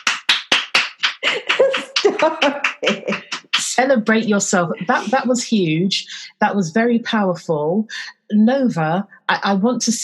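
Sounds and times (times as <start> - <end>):
round of applause: 0.0 - 3.7
laughter: 1.1 - 5.2
speech: 1.2 - 10.0.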